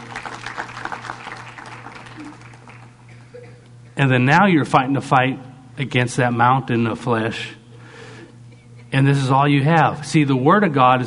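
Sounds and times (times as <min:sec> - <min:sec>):
audience applause: 0:00.0 - 0:03.0
speech: 0:04.0 - 0:07.6, 0:08.9 - 0:11.0.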